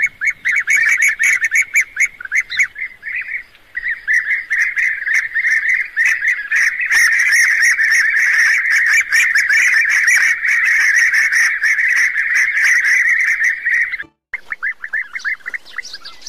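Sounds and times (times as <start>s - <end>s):
European bee-eaters trilling: 0.0s - 16.2s.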